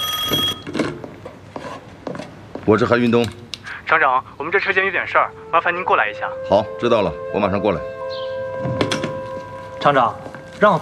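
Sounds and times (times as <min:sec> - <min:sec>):
factory director's telephone ringing: 0:00.0 - 0:00.7
speech: 0:02.7 - 0:08.0, 0:09.8 - 0:10.7.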